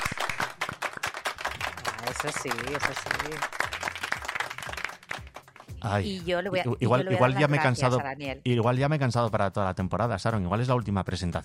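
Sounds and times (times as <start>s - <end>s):
applause: 0.0s - 5.9s
speech: 2.1s - 3.6s, 5.8s - 11.4s.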